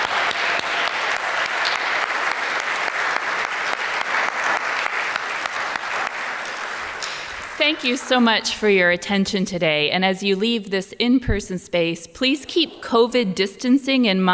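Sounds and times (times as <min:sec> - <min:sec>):
audience applause: 0:00.0 - 0:08.3
speech: 0:07.6 - 0:14.3.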